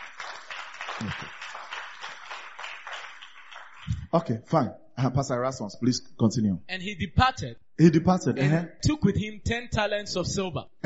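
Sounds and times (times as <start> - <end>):
audience clapping: 0.0 - 4.1
speech: 1.0 - 1.4, 4.1 - 10.8.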